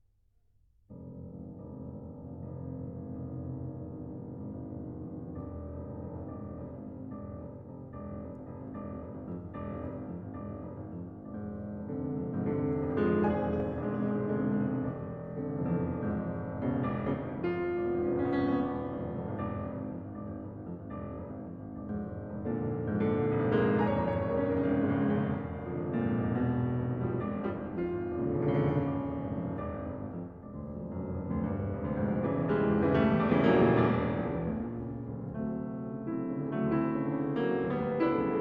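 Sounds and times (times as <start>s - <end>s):
piano waltz: 0.9s - 38.4s.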